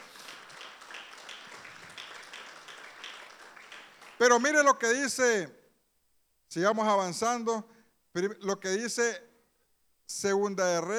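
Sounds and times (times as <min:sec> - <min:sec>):
audience clapping loudly: 0:00.0 - 0:04.8
speech: 0:04.2 - 0:05.6, 0:06.5 - 0:09.3, 0:10.1 - 0:10.9.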